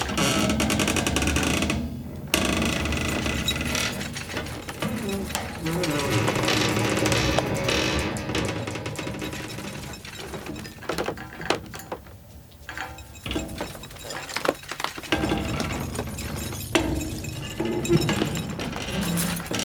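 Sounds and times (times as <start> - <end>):
chandelier rattling: 0.0 - 19.6.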